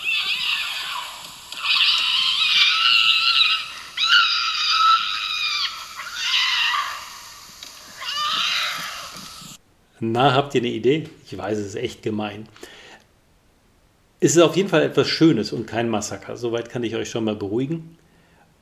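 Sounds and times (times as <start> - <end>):
lynx calls during mating: 0.0 - 9.6
speech: 10.0 - 12.6, 14.2 - 18.0.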